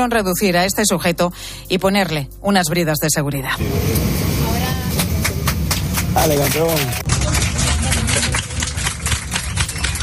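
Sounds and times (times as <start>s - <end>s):
speech: 0.0s - 4.7s, 6.2s - 7.4s
low continuous plane engine rumble: 3.4s - 10.0s
passengers applauding inside a plane after landing in Cancún: 4.9s - 10.0s.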